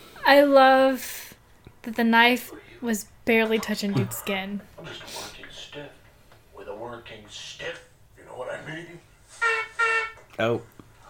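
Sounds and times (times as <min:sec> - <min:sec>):
speech: 0:00.3 - 0:01.2, 0:01.8 - 0:06.0, 0:06.8 - 0:09.6, 0:10.4 - 0:10.7
clown horn honks: 0:09.3 - 0:10.3.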